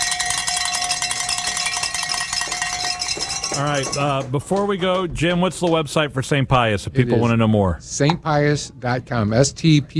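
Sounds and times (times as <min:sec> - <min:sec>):
bells clanging: 0:00.0 - 0:04.8
speech: 0:03.6 - 0:09.9.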